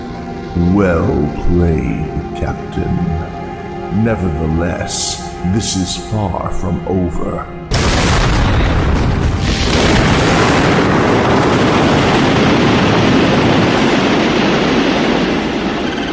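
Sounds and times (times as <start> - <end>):
speech: 0.5 - 7.6
starship Constitution exploding: 7.7 - 16.1.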